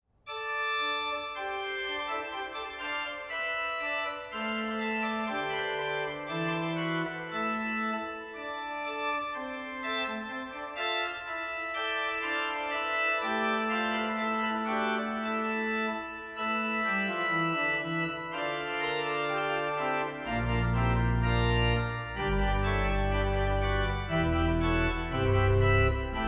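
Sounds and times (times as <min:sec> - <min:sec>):
organist playing organum: 0:00.3 - 0:26.2.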